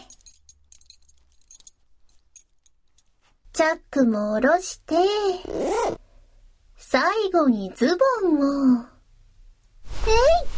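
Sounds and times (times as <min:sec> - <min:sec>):
metal belt buckle clinking as it is unfastened: 0:00.0 - 0:03.3
speech: 0:03.6 - 0:06.0, 0:06.9 - 0:08.9, 0:10.1 - 0:10.5.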